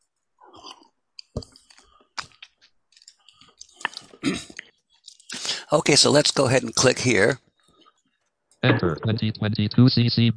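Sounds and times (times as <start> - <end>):
person drinking water with wet gulps and swallowing: 0.5 - 1.6, 3.6 - 5.4
speech: 4.2 - 4.6, 5.7 - 7.5, 8.6 - 10.3.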